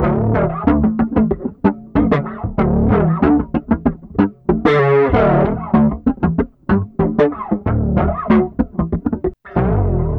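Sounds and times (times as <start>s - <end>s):
bass in D at 94 BPM: 0.0s - 10.1s.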